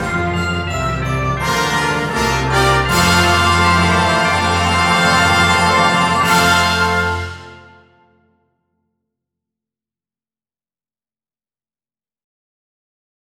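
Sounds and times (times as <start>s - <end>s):
handbells playing: 0.0s - 7.8s.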